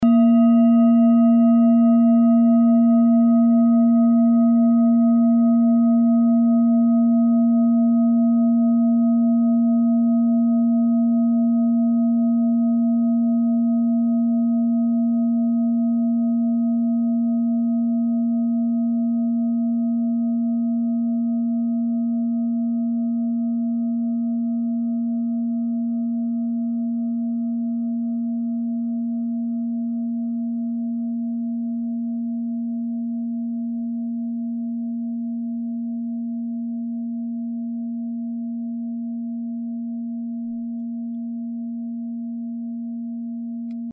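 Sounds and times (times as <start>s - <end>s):
singing bowl from Ladakh: 0.0s - 43.9s.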